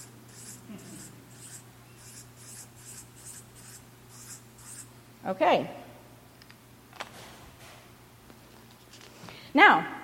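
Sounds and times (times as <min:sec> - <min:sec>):
scratchy drawing strokes sketching many small stones onto a sheet: 0:00.0 - 0:04.9
speech: 0:05.2 - 0:05.8, 0:09.6 - 0:10.0.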